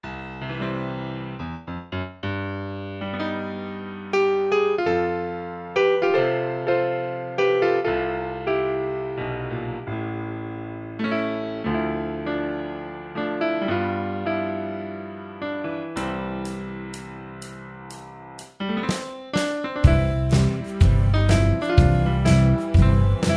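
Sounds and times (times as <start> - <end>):
instrumental music: 0.0 - 23.3.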